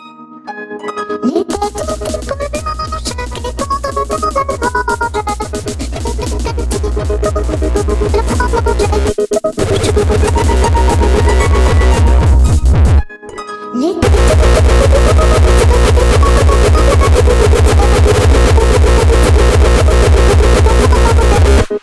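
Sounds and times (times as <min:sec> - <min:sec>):
frenchcore lullaby: 0:00.0 - 0:21.8.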